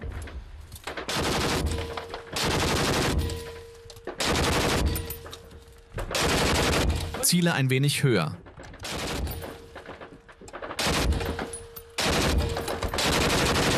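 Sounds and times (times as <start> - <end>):
machine gun fire: 1.0 - 3.4, 4.2 - 5.0, 6.1 - 7.2, 8.8 - 13.7
speech: 7.3 - 8.4.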